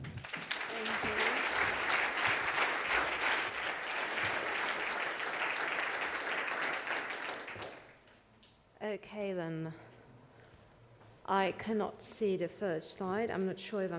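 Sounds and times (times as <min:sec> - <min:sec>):
audience applause: 0:00.0 - 0:08.0
speech: 0:09.0 - 0:09.9, 0:11.3 - 0:13.9.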